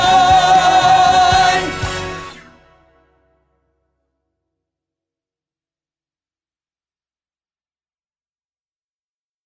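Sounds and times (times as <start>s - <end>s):
tenor singing a rehearsal track: 0.0s - 2.8s.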